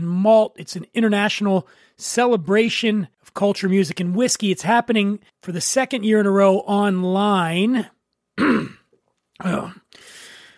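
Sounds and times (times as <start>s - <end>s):
speech: 0.0s - 8.8s, 9.4s - 9.8s
person clearing throat: 8.4s - 9.9s.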